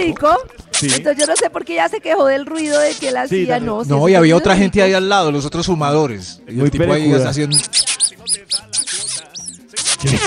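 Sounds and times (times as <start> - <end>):
speech: 0.0 - 7.9, 10.0 - 10.2
rat squeaking: 0.8 - 1.5, 2.5 - 3.3, 7.0 - 10.2.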